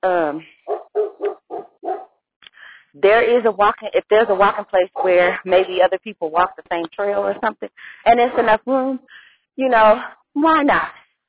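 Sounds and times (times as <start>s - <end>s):
speech: 0.0s - 0.6s, 3.0s - 11.0s
dogs barking: 0.7s - 2.1s, 4.9s - 5.8s.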